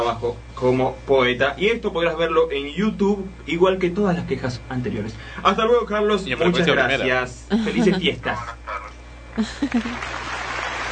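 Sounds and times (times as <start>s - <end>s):
speech: 0.0s - 8.6s, 9.4s - 10.3s
laughter: 7.5s - 10.2s
applause: 9.7s - 10.8s.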